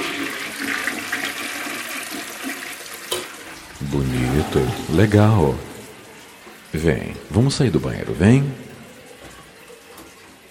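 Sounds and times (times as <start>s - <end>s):
toilet flushing: 0.0s - 10.5s
speech: 3.8s - 5.7s, 6.7s - 8.7s.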